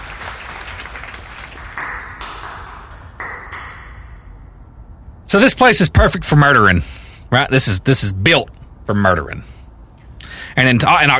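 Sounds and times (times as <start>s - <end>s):
audience clapping: 0.0s - 4.3s
speech: 5.3s - 9.5s, 10.6s - 11.1s.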